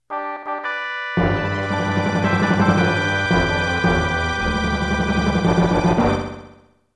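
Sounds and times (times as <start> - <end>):
fanfare: 0.1 - 6.6.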